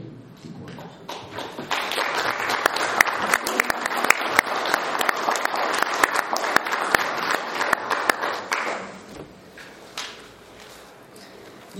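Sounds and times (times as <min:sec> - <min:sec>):
audience applause at an Italian gathering: 0:00.8 - 0:09.0.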